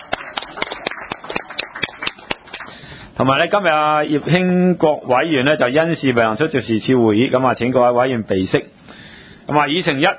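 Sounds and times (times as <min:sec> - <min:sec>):
audience applause: 0:00.0 - 0:02.8
speech: 0:03.2 - 0:08.8, 0:09.5 - 0:10.1.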